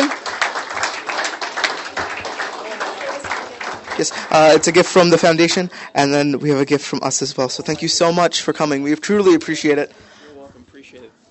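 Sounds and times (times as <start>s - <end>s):
audience applause: 0.0s - 5.8s
speech: 4.0s - 10.1s.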